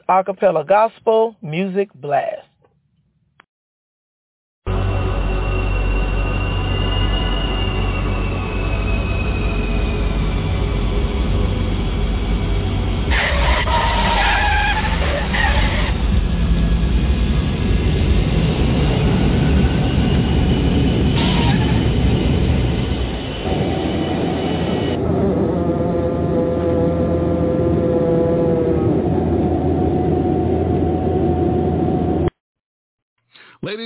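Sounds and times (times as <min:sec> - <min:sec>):
speech: 0:00.1 - 0:02.5
large airplane landing roar: 0:04.7 - 0:32.3
airplane tires screeching and skidding: 0:05.4 - 0:26.1.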